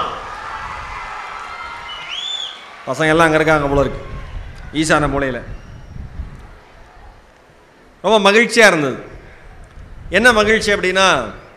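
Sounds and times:
large crowd applauding and cheering: 0:00.0 - 0:04.8
high whistle-like cry: 0:01.8 - 0:02.7, 0:05.4 - 0:06.1
speech: 0:02.9 - 0:04.1, 0:04.7 - 0:05.6, 0:08.0 - 0:09.1, 0:10.1 - 0:11.4.

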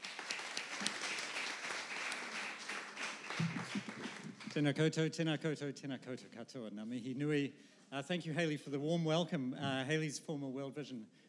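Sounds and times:
audience applause welcoming a speaker: 0:00.0 - 0:04.6
speech: 0:04.6 - 0:11.2.

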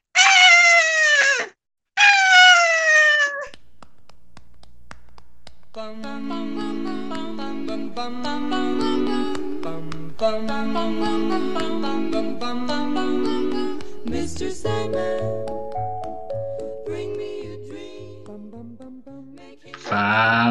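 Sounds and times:
voice imitating a crying koala: 0:00.1 - 0:03.5, 0:19.8 - 0:20.4
speech: 0:05.8 - 0:15.5.

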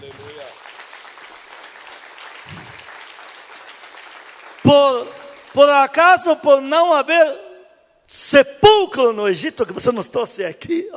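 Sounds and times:
crowd clapping: 0:00.0 - 0:06.4
speech: 0:04.7 - 0:07.4, 0:08.1 - 0:10.9.

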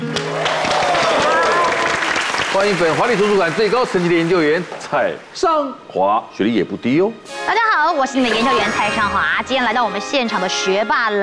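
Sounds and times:
hands clapping: 0:00.0 - 0:05.3
speech: 0:02.6 - 0:11.2.

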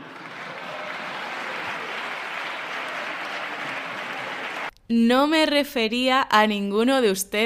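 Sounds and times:
applause from a large crowd of parliament deputies: 0:00.0 - 0:04.7
speech: 0:04.9 - 0:07.4.

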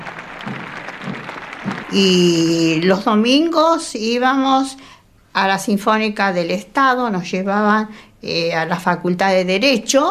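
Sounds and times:
crowd applause at a parade: 0:00.0 - 0:02.8
speech: 0:01.9 - 0:10.1.

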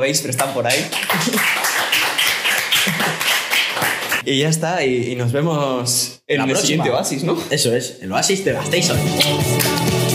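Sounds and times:
speech: 0:00.0 - 0:02.0, 0:02.8 - 0:10.0
applause: 0:00.4 - 0:04.2.

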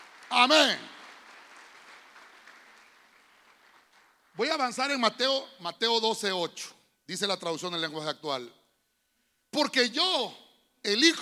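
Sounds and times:
audience clapping: 0:00.0 - 0:05.0
speech: 0:00.3 - 0:00.9, 0:04.4 - 0:08.6, 0:09.5 - 0:11.1.

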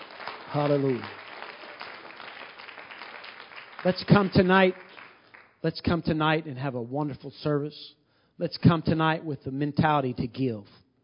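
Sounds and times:
audience hand clapping: 0:00.0 - 0:05.9
speech: 0:00.5 - 0:01.2, 0:03.8 - 0:04.9, 0:05.6 - 0:10.8.

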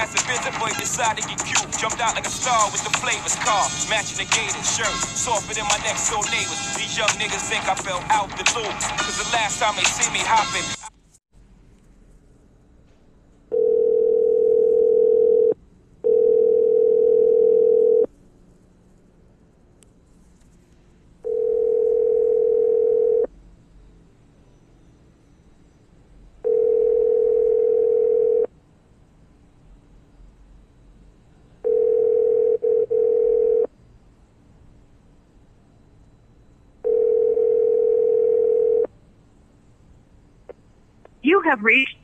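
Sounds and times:
speech: 0:00.0 - 0:10.8, 0:41.5 - 0:42.0
telephone ringback tone: 0:13.5 - 0:18.1, 0:21.2 - 0:23.3, 0:26.4 - 0:28.5, 0:31.6 - 0:33.7, 0:36.8 - 0:38.9.

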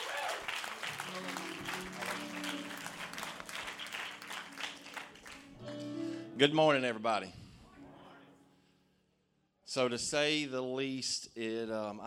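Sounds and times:
church congregation applauding to welcome a guest preacher: 0:00.0 - 0:06.1
speech: 0:06.4 - 0:07.4, 0:09.8 - 0:12.0.

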